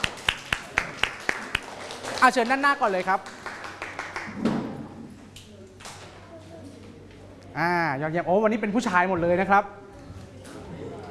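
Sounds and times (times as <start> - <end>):
audience clapping for classmates: 0.0 - 4.4
speech: 2.2 - 3.4, 7.6 - 9.8.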